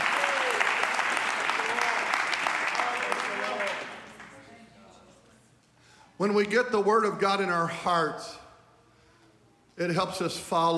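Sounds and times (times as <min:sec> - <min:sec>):
audience clapping hands: 0:00.0 - 0:04.5
speech: 0:06.2 - 0:08.4, 0:09.8 - 0:10.7.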